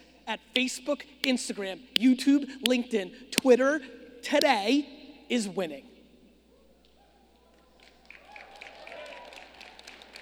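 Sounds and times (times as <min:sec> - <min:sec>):
speech: 0:00.3 - 0:05.9
weak audience applause: 0:07.4 - 0:10.1.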